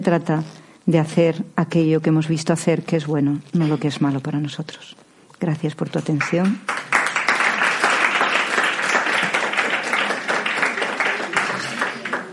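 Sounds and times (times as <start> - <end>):
speech: 0.0 - 6.7
audience applause: 6.7 - 12.3.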